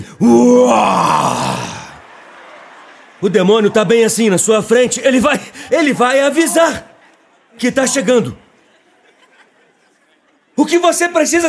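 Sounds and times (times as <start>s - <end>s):
crowd imitating a lion's roar: 0.0s - 2.2s
speech: 0.2s - 1.1s, 3.2s - 6.9s, 7.5s - 8.4s, 10.6s - 11.4s
laughter: 0.5s - 10.6s.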